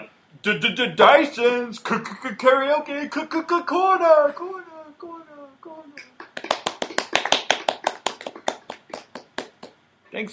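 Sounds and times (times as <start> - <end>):
speech: 0.4 - 4.7, 10.2 - 10.3
hands clapping during a karaoke session: 6.0 - 9.8.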